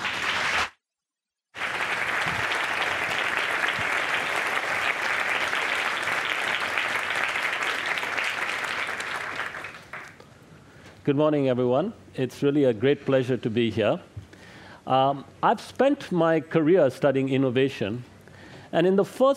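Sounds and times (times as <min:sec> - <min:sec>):
Hay Festival audience applauding to welcome a speaker: 0:00.0 - 0:00.7, 0:01.6 - 0:10.2
speech: 0:11.1 - 0:14.1, 0:14.9 - 0:18.1, 0:18.7 - 0:19.3.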